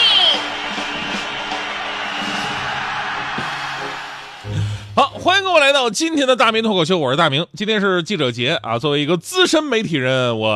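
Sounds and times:
audience applause: 0.0s - 4.6s
voices cheering: 0.0s - 6.5s
speech: 5.2s - 10.5s.

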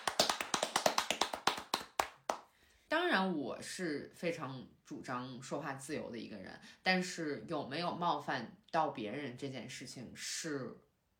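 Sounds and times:
person clapping hands: 0.0s - 2.5s
speech: 2.9s - 10.9s.

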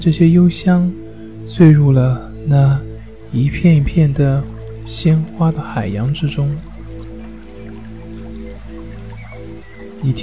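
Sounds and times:
speech: 0.0s - 6.7s, 10.0s - 10.2s
babbling brook: 0.0s - 10.2s.

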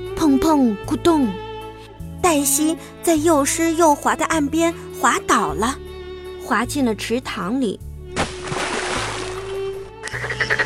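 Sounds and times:
speech: 0.3s - 1.4s, 2.2s - 5.8s, 6.5s - 7.8s
frog croaking loudly: 10.0s - 10.6s.

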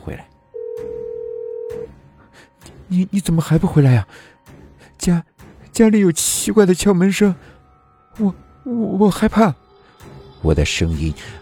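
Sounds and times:
speech: 0.0s - 0.9s, 2.4s - 4.3s, 5.0s - 7.6s, 8.2s - 9.6s, 10.4s - 11.4s
steady telephone tone: 0.6s - 1.9s.

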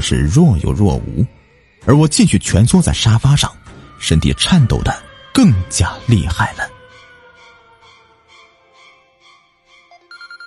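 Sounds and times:
speech: 0.0s - 6.7s
phone ringing: 9.9s - 10.4s.

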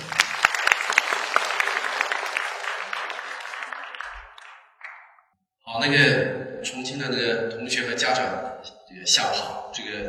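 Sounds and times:
crowd applauding: 0.0s - 5.3s
speech: 5.8s - 10.0s.

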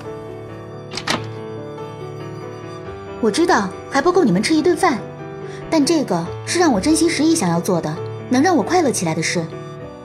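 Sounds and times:
door opening with wooden thunks and latch clatter: 0.9s - 1.5s
speech: 3.2s - 9.6s.

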